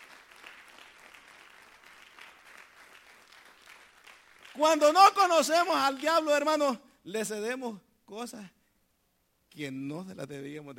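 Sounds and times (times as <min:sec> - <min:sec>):
audience applause: 0:00.0 - 0:05.0
speech: 0:04.6 - 0:08.6, 0:09.6 - 0:10.7.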